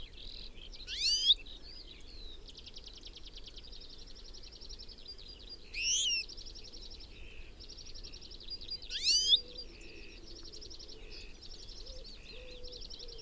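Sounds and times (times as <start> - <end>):
European goldfinch Carduelis carduelis calls: 0.9 - 1.3, 8.9 - 9.4.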